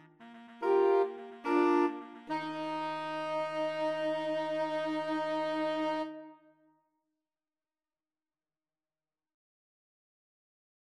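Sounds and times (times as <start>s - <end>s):
saxophone quartet playing: 0.0s - 6.4s.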